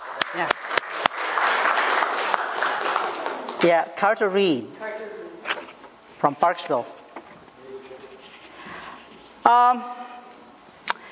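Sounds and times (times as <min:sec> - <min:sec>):
audience clapping: 0:00.0 - 0:04.0
speech: 0:00.3 - 0:00.6, 0:03.6 - 0:04.8, 0:06.2 - 0:07.0, 0:09.5 - 0:10.0.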